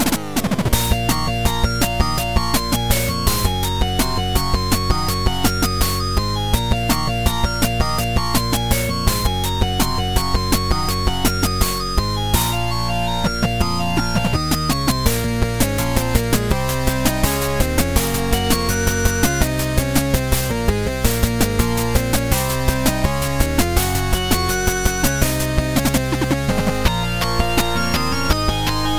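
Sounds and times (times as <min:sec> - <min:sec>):
8-bit battle music ringtone: 0:00.0 - 0:28.9.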